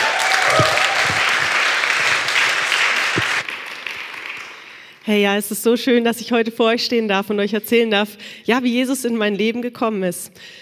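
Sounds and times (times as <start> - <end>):
applause: 0.0 - 5.1
speech: 5.1 - 10.6.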